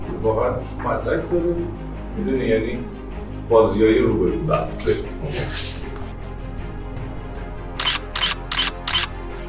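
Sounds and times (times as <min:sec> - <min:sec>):
speech: 0:00.2 - 0:05.8
camera shutter clicks: 0:07.8 - 0:09.1.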